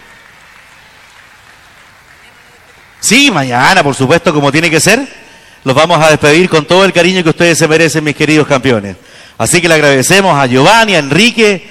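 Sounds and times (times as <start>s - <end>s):
audience applauding cueca dancers: 0.0s - 3.8s
speech: 3.0s - 11.7s.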